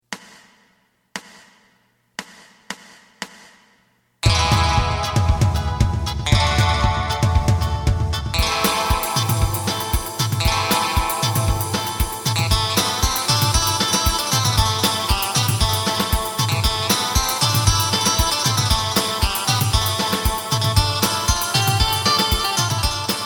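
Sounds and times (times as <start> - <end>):
bass: 4.2 - 16.9, 17.5 - 19.0, 19.6 - 23.1.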